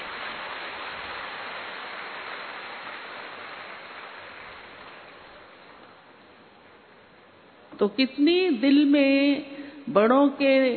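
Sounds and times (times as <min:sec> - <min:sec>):
crowd applause: 0:00.0 - 0:05.8
speech: 0:07.8 - 0:10.7.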